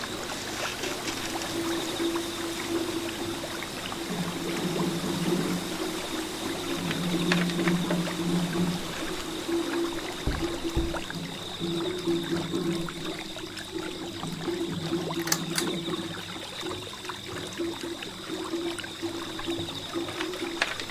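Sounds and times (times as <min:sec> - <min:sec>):
flowing water: 0:00.0 - 0:20.8
drums echoing on a small bridge: 0:02.2 - 0:13.2.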